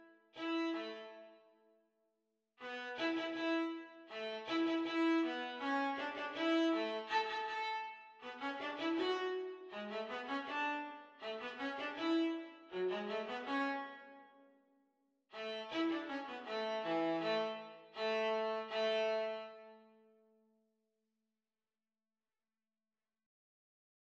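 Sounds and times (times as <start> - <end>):
viola duet at practice speed: 2.6 - 14.0, 15.4 - 19.8.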